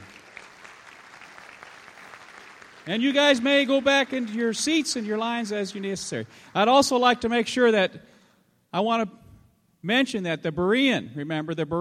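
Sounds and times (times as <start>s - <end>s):
faint audience applause honouring leaders: 0.0s - 6.8s
speech: 2.9s - 8.1s, 8.7s - 9.2s, 9.8s - 11.7s.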